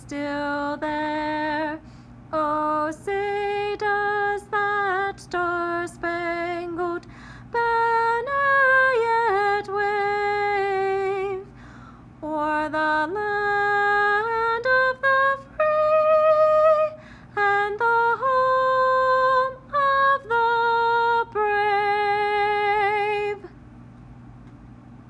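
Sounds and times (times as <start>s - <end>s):
person singing a cappella: 0.0s - 11.5s, 12.2s - 23.5s.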